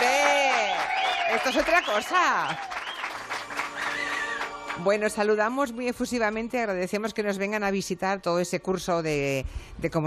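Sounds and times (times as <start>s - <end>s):
studio audience applause: 0.0s - 5.1s
whistles: 0.7s - 4.5s
speech: 1.3s - 2.8s, 4.8s - 10.0s.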